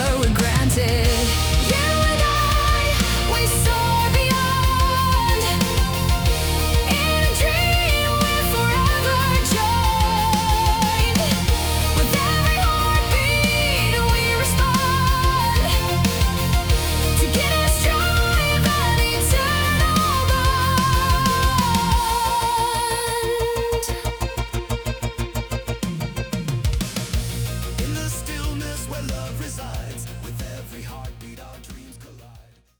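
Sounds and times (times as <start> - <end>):
melodic metal music: 0.0 - 32.3.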